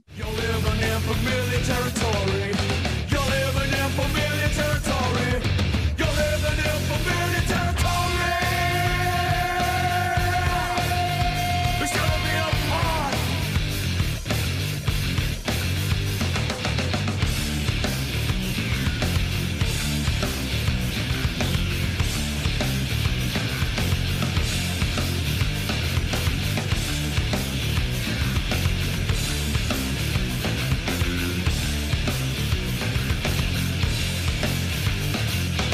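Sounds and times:
crunching distorted guitars: 0:00.0 - 0:35.7
heavy riff-driven Australian rock: 0:00.0 - 0:35.7
pounding drums: 0:00.3 - 0:35.7
speech: 0:01.1 - 0:02.5
strained shouted vocal: 0:07.6 - 0:13.5.

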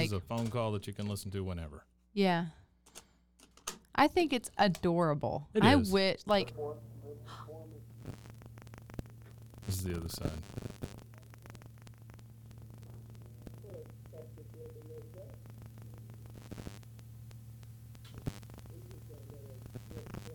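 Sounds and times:
low electrical hum of a running cassette player: 0:00.0 - 0:01.6, 0:02.2 - 0:20.3
tape hiss: 0:00.0 - 0:01.8, 0:05.6 - 0:20.3
speech: 0:00.0 - 0:02.6, 0:04.0 - 0:07.5, 0:09.7 - 0:11.0
faint voices: 0:05.6 - 0:17.1, 0:18.0 - 0:20.3.

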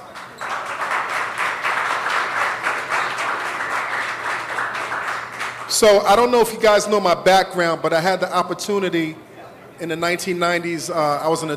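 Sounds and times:
audience applause: 0:00.0 - 0:06.3
speech: 0:05.8 - 0:11.5.

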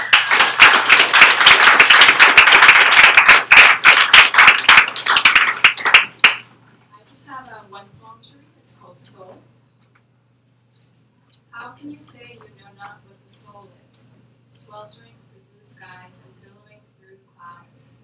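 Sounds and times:
audience applause welcoming a first-time poet to the open mic: 0:00.0 - 0:06.4.

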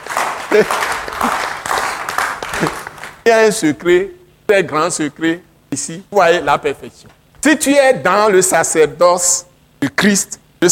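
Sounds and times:
church congregation applauding: 0:00.0 - 0:03.3
laughter: 0:00.2 - 0:03.0
speech: 0:00.5 - 0:01.4, 0:02.6 - 0:10.7.

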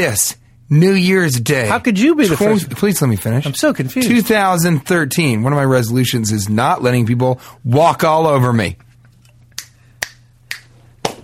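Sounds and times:
speech: 0:00.0 - 0:08.8
finger snaps: 0:09.5 - 0:11.2
butt slap: 0:09.6 - 0:11.2.

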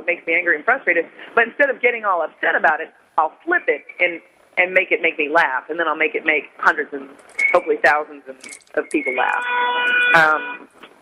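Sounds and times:
speech: 0:00.0 - 0:10.8
car horn blast in city street: 0:09.4 - 0:10.7.

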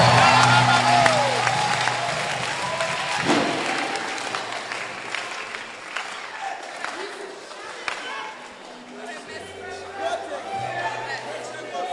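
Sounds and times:
people clapping: 0:00.0 - 0:08.6.

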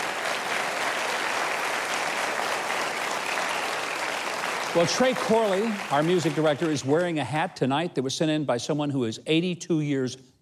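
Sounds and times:
audience applause at a live music show honoring veterans: 0:00.0 - 0:07.2
speech: 0:04.7 - 0:10.3.

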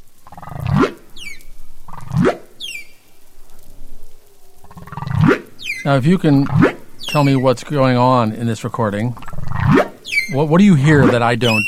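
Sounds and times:
humpback whale song: 0:00.3 - 0:07.6, 0:09.3 - 0:11.6
speech: 0:05.8 - 0:11.6.

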